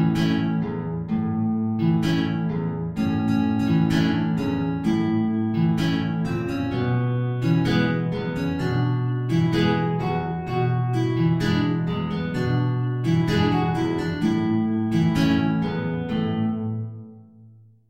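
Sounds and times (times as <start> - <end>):
two guitars playing a tango: 0.0 - 17.3.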